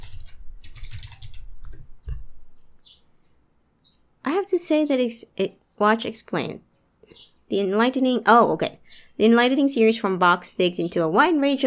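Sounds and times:
computer keyboard typing a search: 0.0s - 1.9s
speech: 4.4s - 6.7s, 7.5s - 11.6s.

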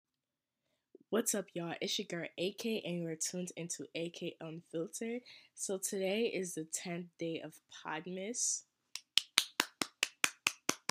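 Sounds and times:
speech: 1.1s - 8.7s
clapping: 9.0s - 10.8s.

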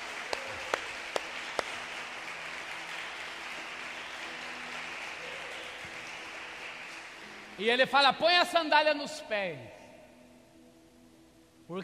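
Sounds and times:
audience applauding: 0.0s - 7.6s
speech: 7.6s - 9.8s, 11.7s - 11.8s.

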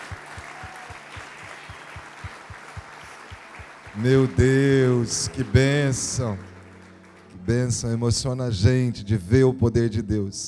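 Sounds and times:
audience applauding: 0.0s - 8.0s
speech: 4.0s - 6.5s, 7.5s - 10.4s.

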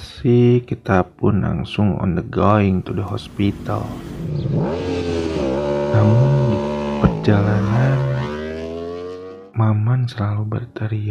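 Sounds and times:
speech: 0.2s - 4.9s, 7.2s - 8.1s, 9.6s - 11.1s
motorcycle engine revving: 3.1s - 9.6s.

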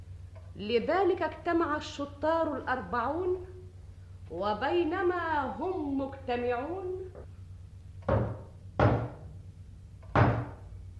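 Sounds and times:
speech: 0.6s - 3.5s, 4.3s - 7.3s
heavy knocking on a door: 8.0s - 9.3s, 10.1s - 10.7s.

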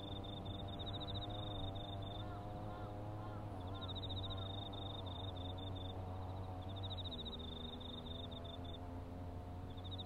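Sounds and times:
autumn insects chirping in trills: 0.0s - 2.3s, 3.6s - 8.8s, 9.7s - 10.0s
grass mower engine droning: 0.0s - 10.0s.

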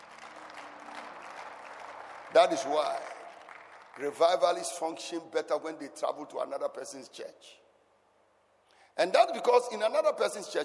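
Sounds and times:
audience clapping: 0.0s - 5.0s
speech: 2.3s - 3.1s, 4.0s - 7.6s, 9.0s - 10.6s.

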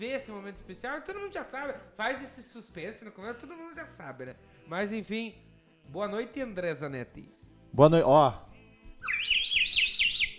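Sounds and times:
speech: 0.0s - 9.2s
toy party blowout whistle being blown: 9.0s - 10.3s.

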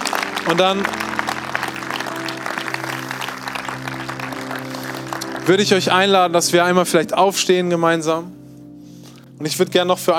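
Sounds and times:
audience applause: 0.0s - 6.1s
speech: 0.4s - 1.0s, 5.5s - 8.4s, 9.4s - 10.1s.

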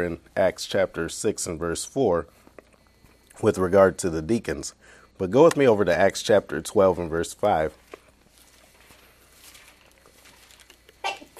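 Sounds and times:
speech: 0.0s - 2.4s, 3.4s - 7.8s
quiet hiss: 0.0s - 11.3s
sneeze: 11.0s - 11.3s.

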